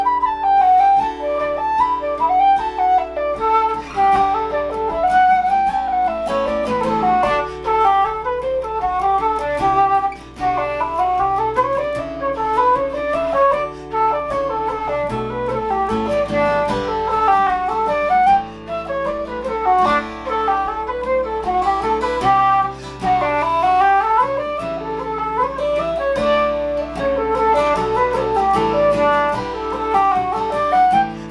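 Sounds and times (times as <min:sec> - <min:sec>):
flute playing a reel: 0:00.0 - 0:31.2
guitar: 0:00.0 - 0:31.2.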